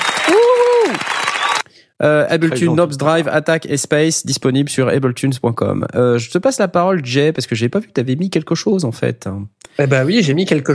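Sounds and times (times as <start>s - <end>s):
applause: 0.0s - 1.6s
person whooping: 0.0s - 1.6s
speech: 2.0s - 10.7s.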